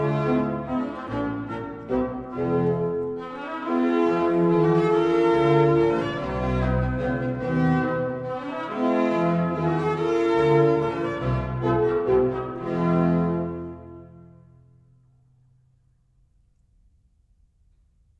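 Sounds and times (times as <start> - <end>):
symphony minuet and trio: 0.0 - 14.4.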